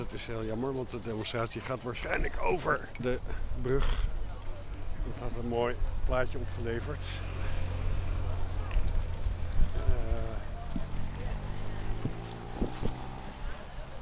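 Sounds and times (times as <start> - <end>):
speech: 0.0 - 4.2, 5.0 - 7.3
police motorcycle engine passing: 6.7 - 14.0.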